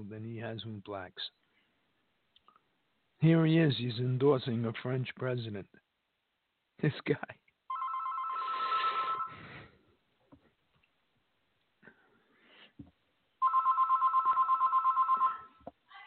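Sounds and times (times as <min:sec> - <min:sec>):
speech: 0:00.0 - 0:01.4, 0:03.2 - 0:05.8, 0:06.8 - 0:07.4
telephone ringing with incoming call, trilling electronic bell: 0:07.7 - 0:09.4, 0:13.4 - 0:15.6.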